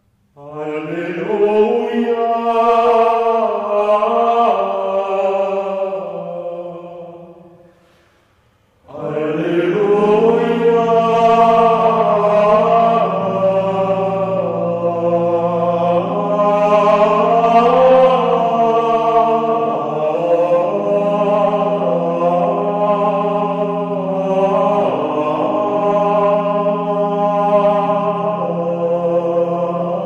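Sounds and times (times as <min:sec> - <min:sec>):
solo voice singing alleluia: 0:00.4 - 0:07.7, 0:08.8 - 0:30.0.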